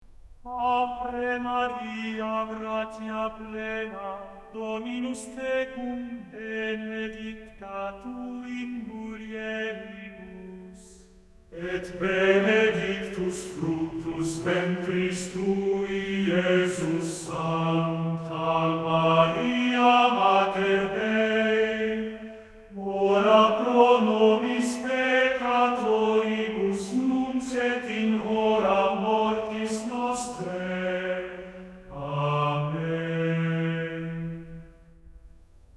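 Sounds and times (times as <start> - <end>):
Latin Catholic Gregorian chant singing: 0.4 - 34.9.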